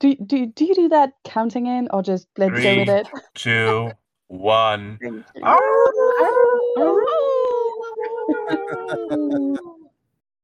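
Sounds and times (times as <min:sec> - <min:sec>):
speech: 0:00.0 - 0:07.4, 0:08.5 - 0:09.7
laughter: 0:02.5 - 0:04.8, 0:07.7 - 0:09.9
people howling together like wolves: 0:05.4 - 0:09.9.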